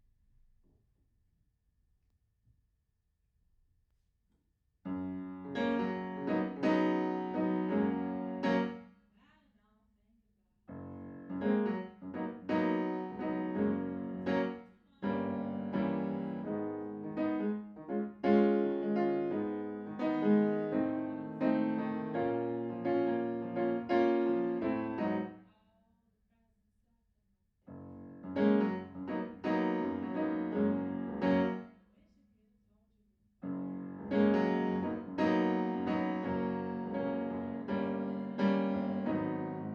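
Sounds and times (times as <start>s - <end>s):
piano in a room: 4.9s - 8.9s, 10.7s - 25.4s, 27.7s - 31.8s, 33.4s - 39.7s.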